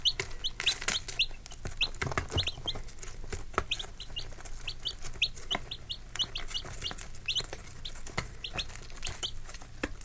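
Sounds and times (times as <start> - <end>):
chicks chirping: 0.0 - 10.0.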